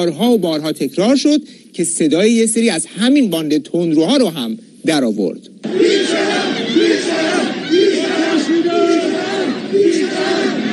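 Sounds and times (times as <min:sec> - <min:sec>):
speech: 0:00.0 - 0:07.5
crowd chanting slogans at funeral: 0:05.6 - 0:10.7.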